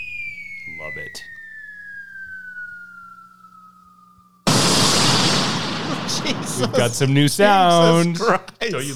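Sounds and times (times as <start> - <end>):
falling-bomb effect whistling tone sliding downward: 0.0 - 8.0
speech: 0.8 - 1.4, 6.1 - 8.9
loud roaring bomb explosion sound effect: 4.5 - 7.9
laughter: 5.6 - 8.9.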